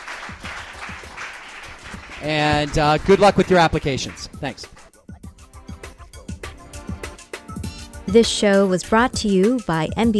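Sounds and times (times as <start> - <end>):
audience round of applause: 0.0 - 4.8
speech: 0.3 - 0.6, 2.2 - 4.8, 8.1 - 10.1.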